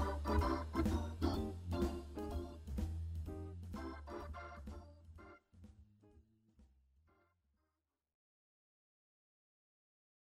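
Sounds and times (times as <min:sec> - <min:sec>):
musical riff: 0:00.0 - 0:05.4.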